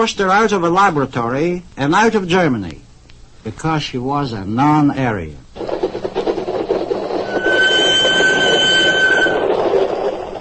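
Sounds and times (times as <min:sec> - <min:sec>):
speech: 0:00.0 - 0:02.8, 0:03.4 - 0:05.4
train rumbling along tracks: 0:05.6 - 0:10.3
metallic wheel squeal: 0:07.0 - 0:10.3.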